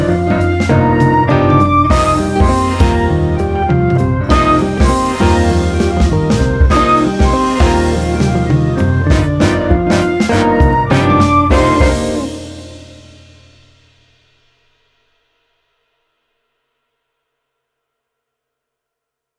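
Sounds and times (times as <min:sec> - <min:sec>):
instrumental music: 0:00.0 - 0:13.9.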